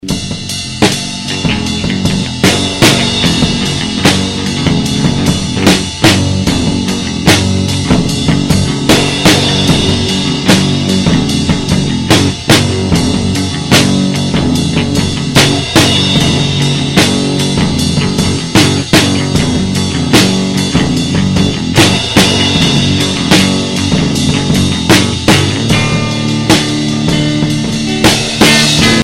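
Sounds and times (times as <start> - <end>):
instrumental music: 0.0 - 29.0.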